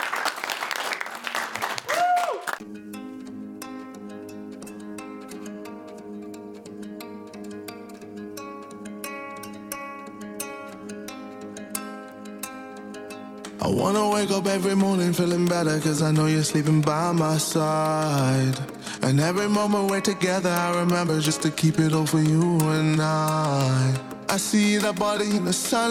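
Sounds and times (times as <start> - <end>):
audience applause: 0.0 - 2.6
music track: 2.6 - 25.9
speech: 13.6 - 25.9.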